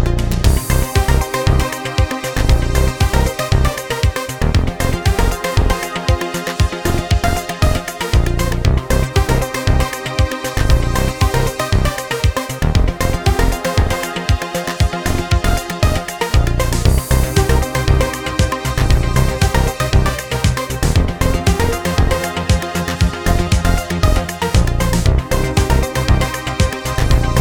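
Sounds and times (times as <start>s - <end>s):
old-school music: 0.1s - 27.3s.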